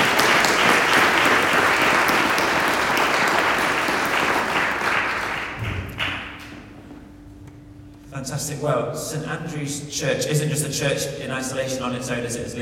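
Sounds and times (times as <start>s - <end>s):
audience applause: 0.0s - 6.5s
speech: 8.6s - 12.6s.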